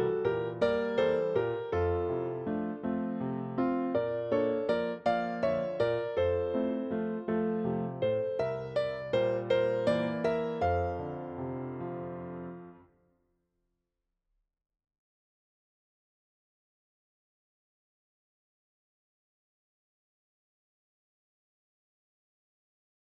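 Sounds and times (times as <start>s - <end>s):
electric piano: 0.0s - 12.9s.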